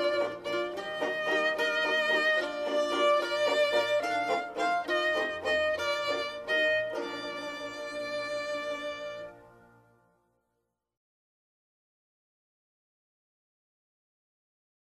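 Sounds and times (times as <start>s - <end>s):
music: 0.0s - 11.0s.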